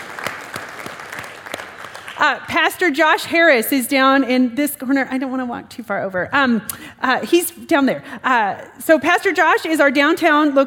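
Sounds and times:
audience applause: 0.0s - 2.2s
speech: 2.2s - 10.6s.

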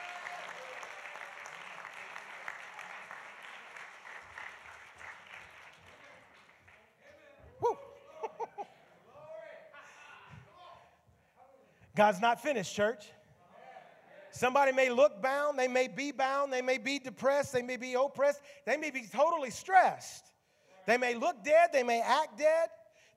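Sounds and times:
audience applause: 0.0s - 6.9s
laughter: 7.5s - 9.2s
speech: 12.0s - 13.2s, 14.3s - 23.1s.

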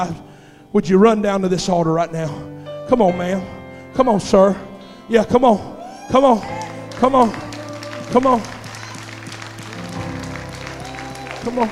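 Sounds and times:
speech: 0.0s - 7.5s, 8.1s - 8.6s, 11.4s - 11.7s
crowd clapping: 6.2s - 11.7s.

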